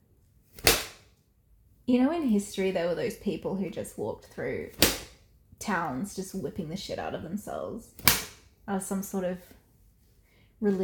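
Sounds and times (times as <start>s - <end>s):
sharp slap of someone striking their own feet: 0.5s - 1.1s, 4.7s - 5.2s, 8.0s - 8.5s
speech: 1.9s - 9.6s, 10.6s - 10.8s.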